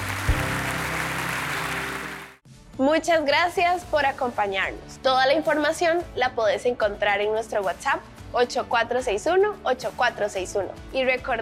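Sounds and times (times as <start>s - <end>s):
church congregation applauding the Lord at the close of a service: 0.0s - 2.4s
speech: 2.8s - 11.4s.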